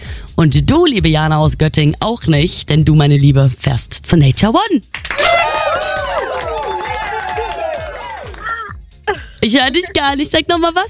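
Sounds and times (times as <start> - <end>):
speech: 0.4 - 5.2, 9.1 - 10.8
crowd cheering and shouting: 5.1 - 8.6.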